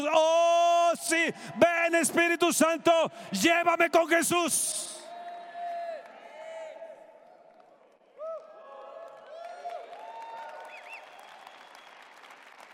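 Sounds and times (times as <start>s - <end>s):
voices shouting and cheering: 0.0s - 7.1s
speech: 1.2s - 4.9s
audience clapping: 7.1s - 12.7s.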